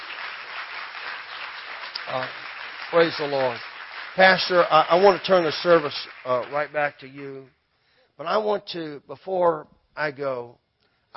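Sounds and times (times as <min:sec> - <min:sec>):
audience clapping in praise: 0:00.0 - 0:07.4
speech: 0:02.1 - 0:07.6, 0:08.2 - 0:11.1.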